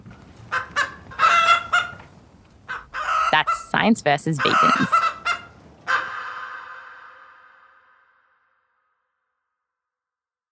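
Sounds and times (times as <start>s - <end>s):
chickens clucking and squawking: 0.5s - 7.1s
low hum: 2.0s - 5.8s
speech: 3.3s - 5.1s.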